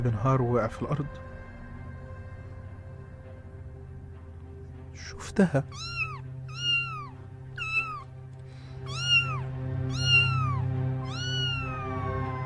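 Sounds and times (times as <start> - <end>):
speech: 0.0 - 1.3, 5.0 - 6.0
small cat meowing: 5.6 - 12.4.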